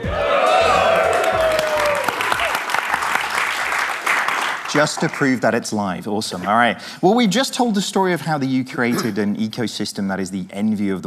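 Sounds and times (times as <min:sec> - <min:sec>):
live cinema audience at a film premiere shouting hello: 0:00.0 - 0:02.6
audience applause: 0:00.1 - 0:05.4
speech: 0:04.8 - 0:11.0.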